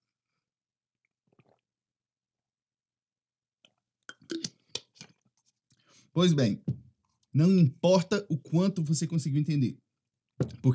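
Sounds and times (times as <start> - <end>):
person drinking water: 1.2 - 1.7, 3.7 - 5.3
speech: 6.2 - 6.8, 7.4 - 9.8, 10.4 - 10.7.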